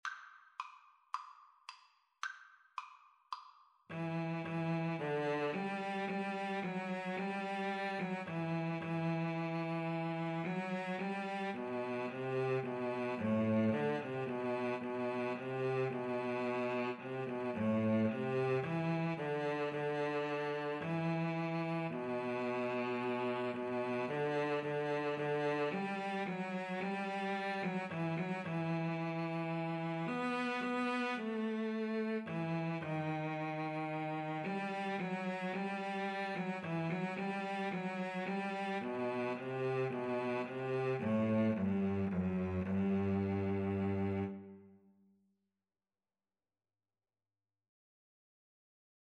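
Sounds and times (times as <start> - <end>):
cello duet: 3.9 - 44.8.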